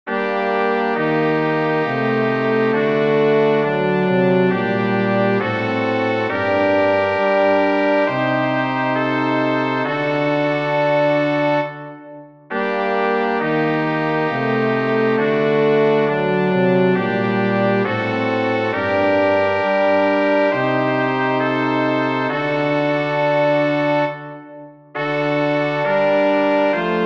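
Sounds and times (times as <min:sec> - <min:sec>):
chorale for brass quartet: 0:00.1 - 0:11.8, 0:12.5 - 0:24.4, 0:25.0 - 0:27.0.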